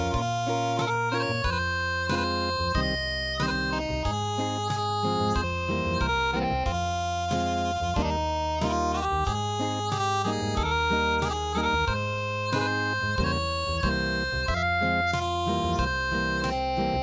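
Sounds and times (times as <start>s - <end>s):
traditional acoustic music: 0.0s - 17.0s.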